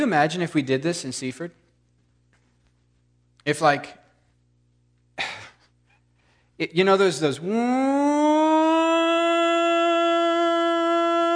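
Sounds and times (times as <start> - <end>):
speech: 0.0 - 1.6, 3.4 - 4.0, 5.2 - 5.4, 6.6 - 8.4
warning siren like a tornado horn: 7.4 - 11.3.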